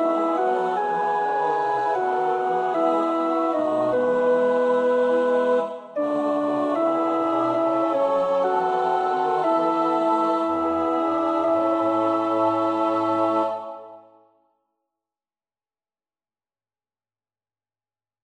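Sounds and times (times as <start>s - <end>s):
alto choir part practice singing: 0.0s - 14.2s.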